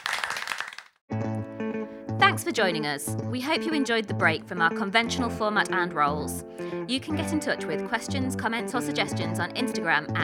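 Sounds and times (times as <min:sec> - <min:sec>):
audience applause: 0:00.0 - 0:01.0
speech: 0:02.4 - 0:10.2.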